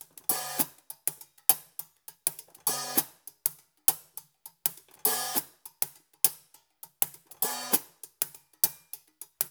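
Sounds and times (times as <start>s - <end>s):
mini hi-hat: 0.0s - 9.5s.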